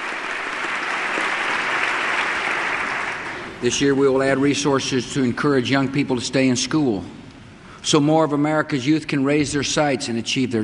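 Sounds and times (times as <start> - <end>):
audience applauding the First Lady: 0.0 - 3.6
speech: 3.6 - 7.2, 7.8 - 10.6.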